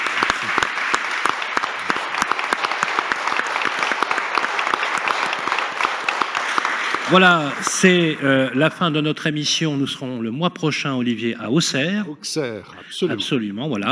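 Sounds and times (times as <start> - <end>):
audience applause: 0.0 - 9.1
speech: 7.1 - 13.8.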